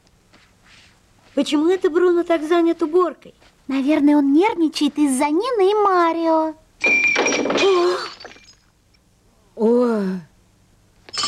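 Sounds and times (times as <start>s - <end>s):
speech: 1.4s - 7.9s
ceramic plate breaking: 6.8s - 8.7s.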